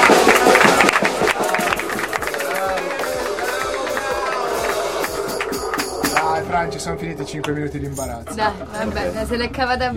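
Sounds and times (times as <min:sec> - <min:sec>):
audience applause: 0:00.0 - 0:07.6
speech: 0:06.6 - 0:09.9.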